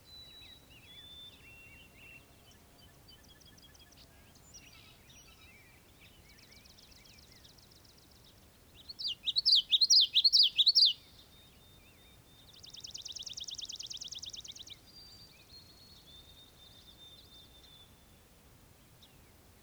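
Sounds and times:
bird song trill and chirps in a European marsh: 0.0 - 18.2.

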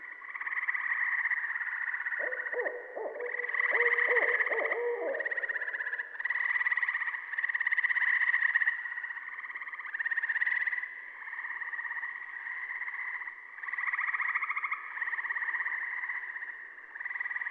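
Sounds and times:
Gray Treefrog calling: 0.0 - 17.4
Saw-whet Owl calling: 2.2 - 6.1.

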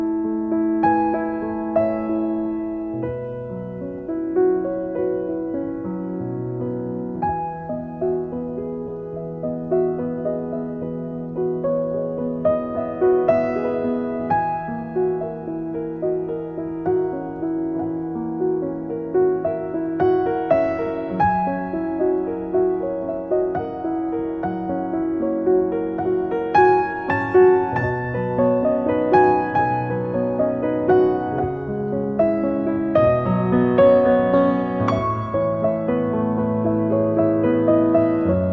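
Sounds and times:
piano piece: 0.0 - 38.5.

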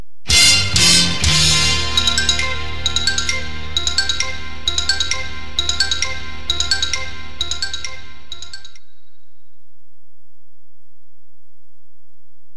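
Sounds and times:
news sounder jingle: 0.3 - 8.9.

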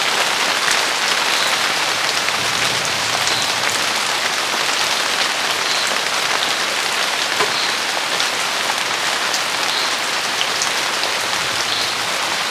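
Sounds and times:
heavy summer rain: 0.0 - 12.4.

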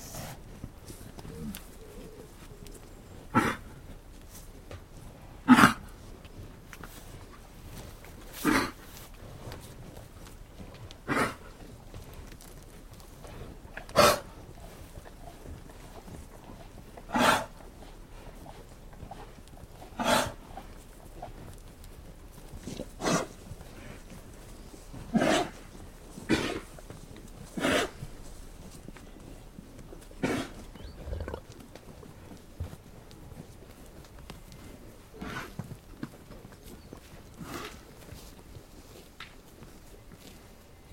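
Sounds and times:
cows milling in: 0.0 - 40.9
cows coughing: 3.3 - 3.8, 5.4 - 5.9, 8.4 - 8.8, 11.0 - 11.5, 13.9 - 14.4, 17.1 - 17.5, 20.0 - 20.4, 25.1 - 25.6, 26.2 - 26.7, 27.6 - 28.0, 30.2 - 31.4.

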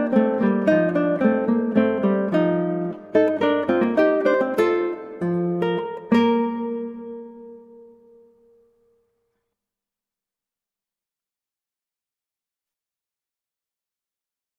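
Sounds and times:
allegro guitar piece: 0.0 - 9.2.

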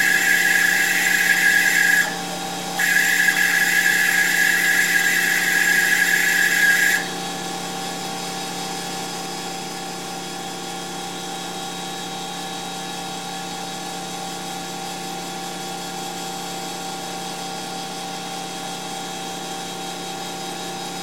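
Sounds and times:
motorized shop tool shaper turning on and running: 0.0 - 8.1.

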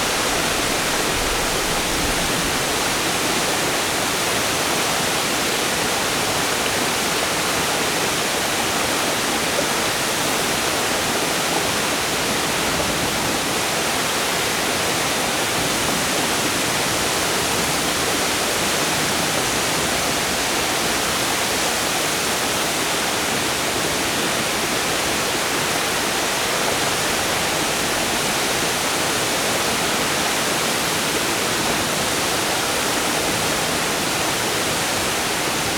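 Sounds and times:
water flowing over rocks in a stream: 0.0 - 35.7.

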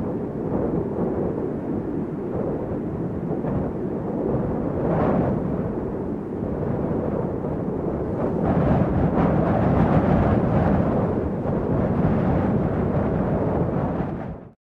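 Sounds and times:
heavy wind gusts with low roar: 0.0 - 14.6.

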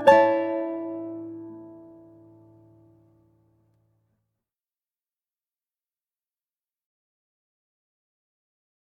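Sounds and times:
ukulele: 0.0 - 2.8
guitar: 0.0 - 3.8.

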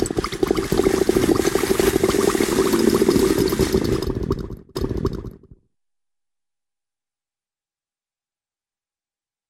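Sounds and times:
single and double bubbles blowing with heavy bloop: 0.0 - 5.6.

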